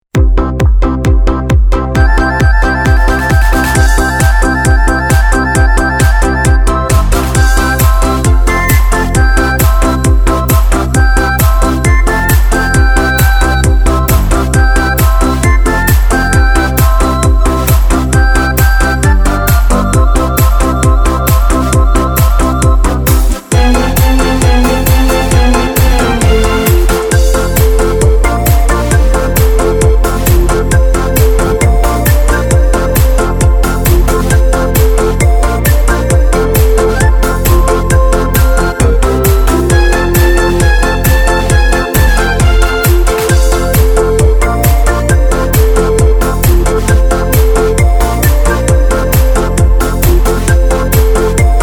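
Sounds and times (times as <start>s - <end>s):
Korg Pa3X arranger keyboard: 0.1s - 51.6s.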